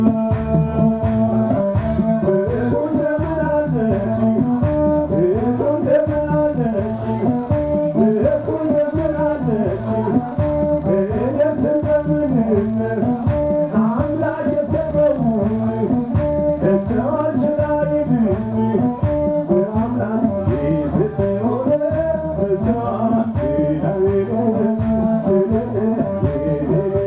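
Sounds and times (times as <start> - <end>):
Ethiopian musicians playing at a restaurant in Addis Ababa: 0.0 - 27.0.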